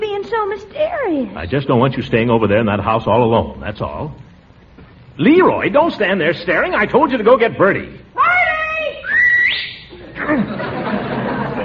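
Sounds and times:
speech: 0.5 - 4.3, 5.2 - 8.3, 10.2 - 10.7
person whistling loudly: 9.0 - 10.0
laughter: 9.9 - 11.6.

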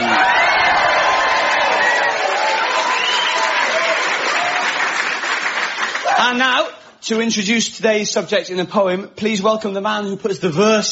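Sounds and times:
audience cheering and screaming: 0.0 - 5.0
applause from a large audience: 0.0 - 6.2
speech: 7.1 - 10.9.

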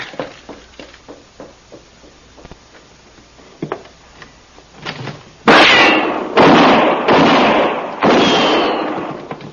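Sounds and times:
gunshots in a gunfight: 5.4 - 9.3.

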